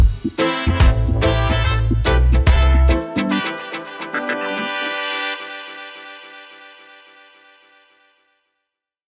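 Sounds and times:
dub music: 0.0s - 6.8s.

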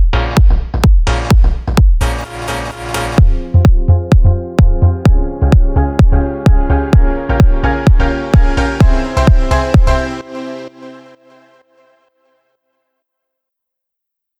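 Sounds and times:
extended kick drum jingle: 0.0s - 2.1s, 3.2s - 10.0s.

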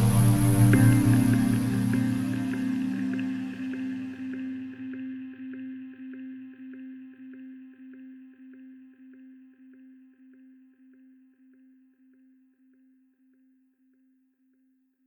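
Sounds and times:
vortex sound waves: 0.0s - 4.8s.

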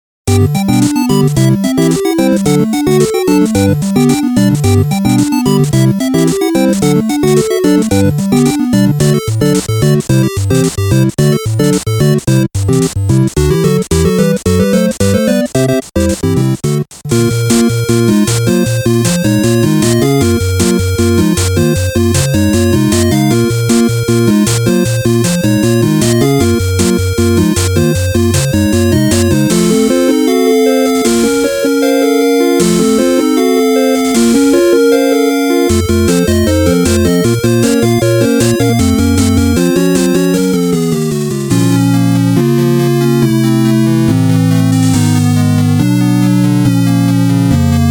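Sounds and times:
8-bit game music: 0.2s - 47.8s.

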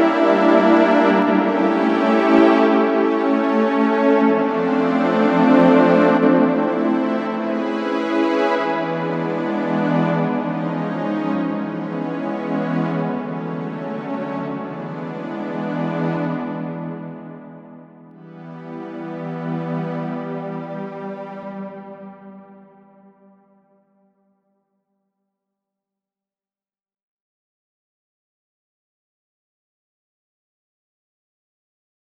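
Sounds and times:
strings: 0.0s - 23.2s.

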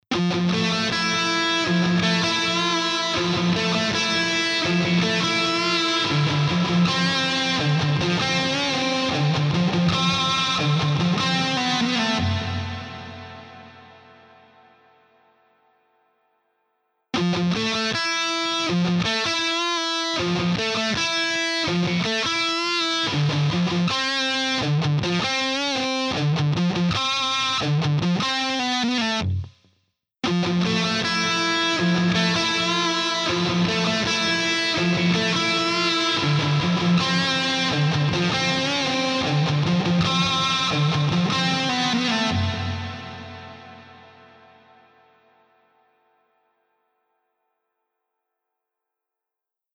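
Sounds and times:
distorted electric guitar: 0.1s - 15.0s, 17.2s - 29.6s, 30.2s - 45.6s.

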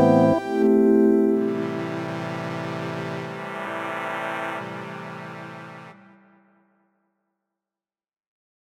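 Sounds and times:
organ flute stop: 0.0s - 6.2s.

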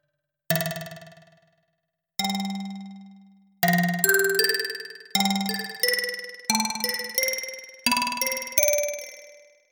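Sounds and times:
modernist xylophone: 3.7s - 9.5s.

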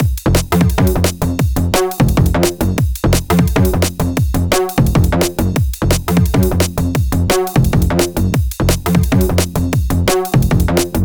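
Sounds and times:
top drums: 0.0s - 11.0s.

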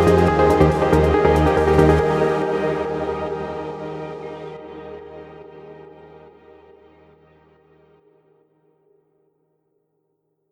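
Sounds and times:
sweet trance music: 0.0s - 6.4s.

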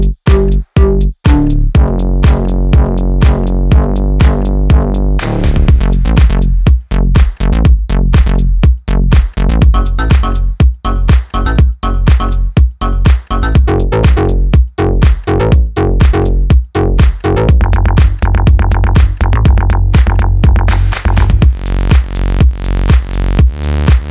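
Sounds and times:
plucked bass: 0.0s - 24.0s.

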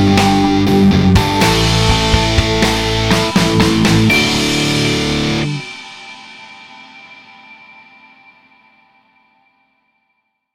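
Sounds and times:
thrash guitar recorded via DI: 0.0s - 7.0s.

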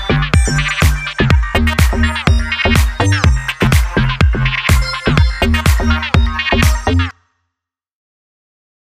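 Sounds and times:
house music beat: 0.0s - 7.2s.

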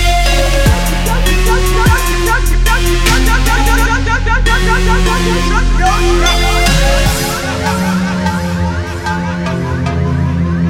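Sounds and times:
trap drum kit: 0.0s - 10.6s.

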